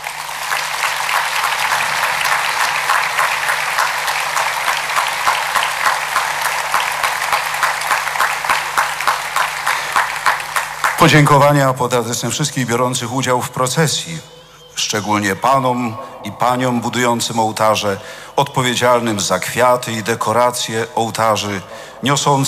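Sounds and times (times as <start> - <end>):
audience applauding a church orchestra and cathedral choir: 0.0 - 11.3
speech: 11.0 - 22.4.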